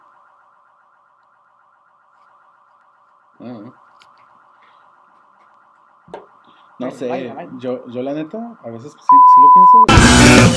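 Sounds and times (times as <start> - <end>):
speech: 3.4 - 4.1, 6.8 - 10.5
alarm sounding from the house next door: 6.0 - 9.9.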